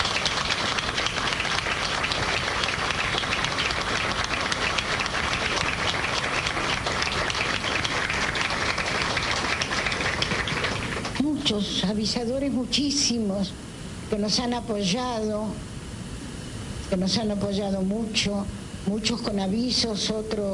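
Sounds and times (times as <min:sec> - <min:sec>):
audience applause: 0:00.0 - 0:11.2
speech: 0:11.5 - 0:15.7, 0:16.9 - 0:20.5.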